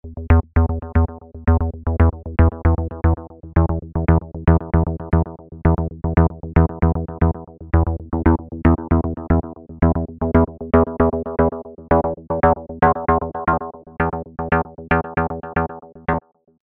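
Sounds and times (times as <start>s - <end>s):
bass: 0.0s - 16.2s.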